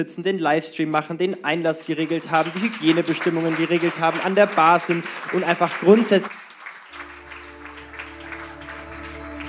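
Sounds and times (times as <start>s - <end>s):
speech: 0.0s - 6.4s
audience applause: 1.6s - 9.4s.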